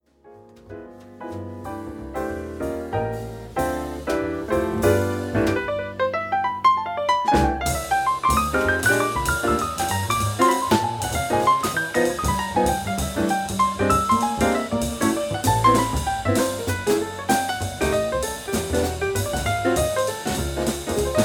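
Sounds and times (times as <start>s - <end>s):
jazz piano solo: 0.0s - 21.2s.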